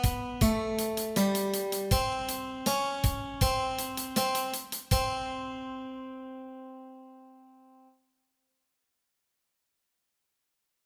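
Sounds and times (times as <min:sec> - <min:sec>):
guitar exercise: 0:00.0 - 0:07.8.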